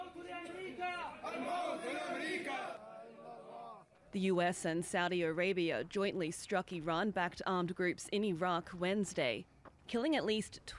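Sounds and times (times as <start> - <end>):
mourning crowd chanting: 0.0 - 3.9
speech: 0.4 - 2.9, 4.1 - 10.7.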